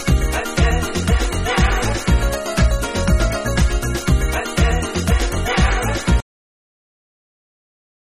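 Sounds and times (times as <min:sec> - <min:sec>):
techno jazz mix: 0:00.0 - 0:06.2.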